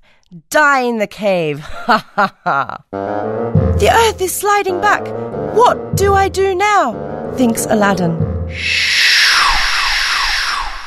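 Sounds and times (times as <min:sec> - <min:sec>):
speech: 0:00.3 - 0:09.0
whooshing: 0:08.5 - 0:10.8.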